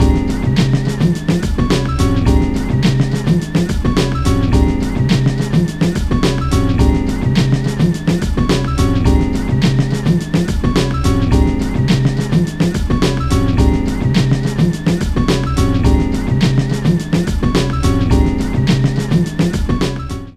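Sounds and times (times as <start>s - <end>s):
menu music loop: 0.0s - 20.3s.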